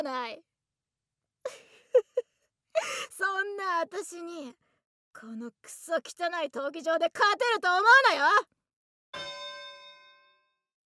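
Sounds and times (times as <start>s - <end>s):
speech: 0.0s - 0.5s, 2.8s - 4.6s, 5.2s - 9.4s
starting bell strike for a fight in an arena: 9.2s - 10.5s.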